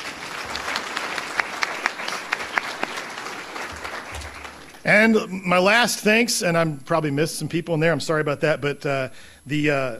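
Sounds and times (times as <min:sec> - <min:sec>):
audience applause: 0:00.0 - 0:04.9
speech: 0:04.8 - 0:09.9.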